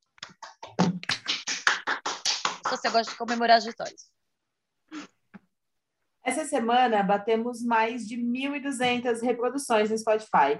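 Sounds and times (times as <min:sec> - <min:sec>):
hands clapping: 0:00.0 - 0:04.0
speech: 0:02.7 - 0:04.2, 0:06.3 - 0:10.5.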